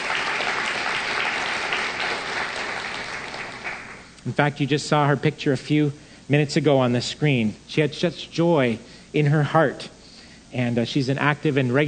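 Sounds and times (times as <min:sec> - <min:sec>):
audience applause: 0:00.0 - 0:04.0
speech: 0:04.2 - 0:11.8.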